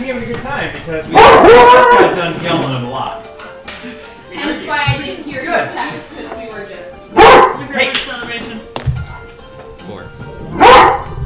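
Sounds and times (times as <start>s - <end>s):
speech: 0.1s - 3.3s, 4.4s - 6.7s
dogs barking: 1.1s - 2.4s, 7.1s - 7.8s, 10.4s - 11.2s.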